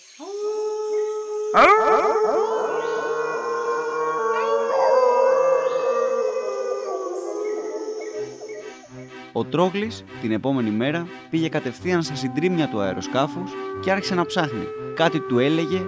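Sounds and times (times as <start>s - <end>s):
speech: 0.2s - 0.5s, 1.5s - 2.5s, 9.4s - 15.8s
wolf pack howling: 0.2s - 9.0s, 12.4s - 15.8s.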